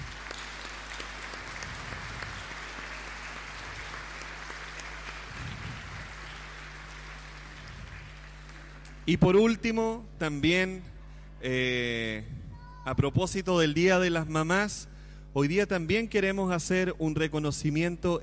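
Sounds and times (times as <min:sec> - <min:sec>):
applause for all the mothers: 0:00.0 - 0:09.4
speech: 0:09.1 - 0:18.2.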